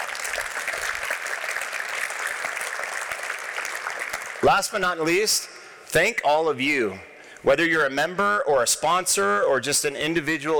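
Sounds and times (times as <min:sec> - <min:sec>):
crowd applause: 0:00.0 - 0:04.6
speech: 0:04.4 - 0:10.5.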